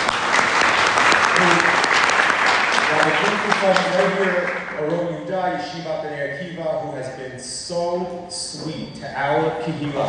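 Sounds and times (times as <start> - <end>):
audience applause: 0.0 - 5.1
speech: 3.1 - 10.0.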